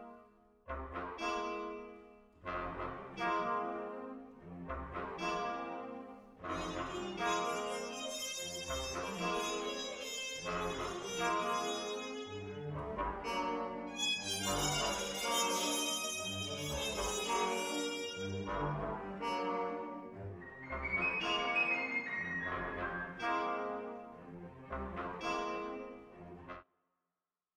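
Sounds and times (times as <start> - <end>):
orchestral music: 0.7 - 26.6.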